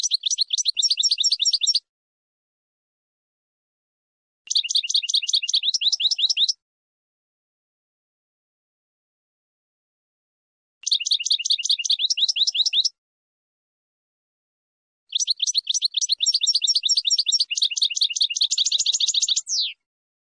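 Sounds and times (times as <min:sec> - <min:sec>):
finch song: 0:00.0 - 0:01.9, 0:04.5 - 0:06.6, 0:10.8 - 0:13.0, 0:15.1 - 0:19.9.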